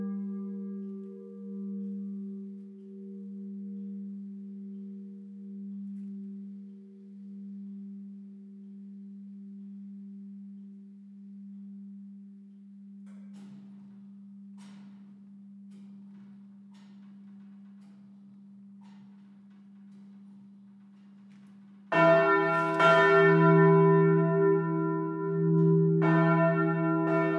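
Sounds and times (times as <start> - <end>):
single bells of the parish church ringing: 0.0 - 7.7, 21.9 - 27.3.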